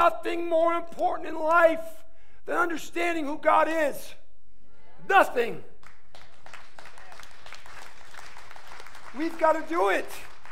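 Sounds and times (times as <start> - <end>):
speech: 0.1 - 4.2, 5.0 - 5.7, 9.2 - 10.3
audience clapping: 5.7 - 10.4.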